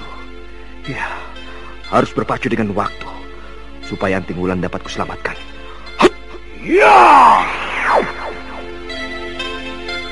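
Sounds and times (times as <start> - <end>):
speech: 0.8 - 1.2, 1.9 - 3.0, 3.9 - 5.5, 6.6 - 8.1
arrow shot from ambush whooshing: 7.3 - 9.2.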